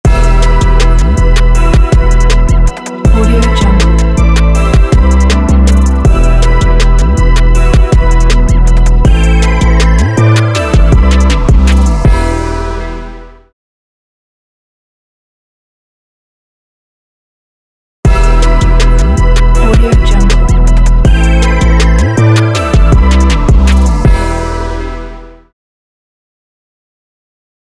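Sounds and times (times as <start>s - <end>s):
bright hip-hop logo jingle: 0.1s - 13.5s, 18.1s - 25.5s.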